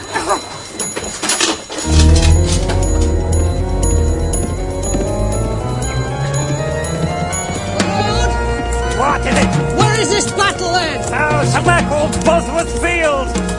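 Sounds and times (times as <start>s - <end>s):
deep clock bell striking eleven o'clock: 0.0s - 13.4s
rustling noise: 1.3s - 6.0s.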